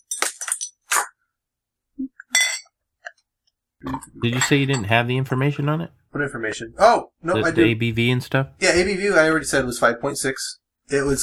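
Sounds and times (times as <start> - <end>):
beer bottle clinking as it is cracked open: 2.3 - 2.7, 3.9 - 5.0
speech: 3.8 - 11.2.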